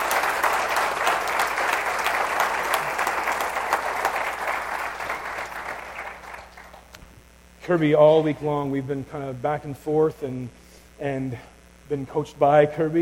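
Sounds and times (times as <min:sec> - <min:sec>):
audience applause welcoming a speaker to the stage: 0:00.0 - 0:07.0
speech: 0:07.7 - 0:13.0.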